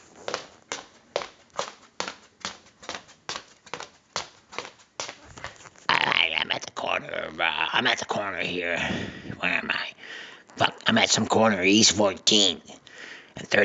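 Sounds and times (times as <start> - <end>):
footsteps walking down a street on hard pavement: 0.0 - 6.0
speech: 7.0 - 12.8, 13.4 - 13.6.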